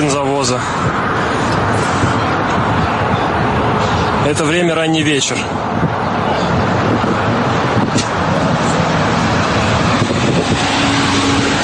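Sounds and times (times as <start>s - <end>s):
cars queuing at a petrol station: 0.0s - 11.6s
speech: 0.1s - 1.3s, 4.3s - 6.7s.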